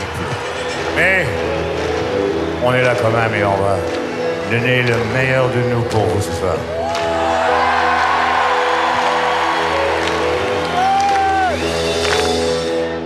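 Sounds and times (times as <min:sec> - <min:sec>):
stadium concert crowd cheering and whooping: 0:00.0 - 0:00.8, 0:06.7 - 0:12.9
speech: 0:01.0 - 0:01.4, 0:02.6 - 0:06.8.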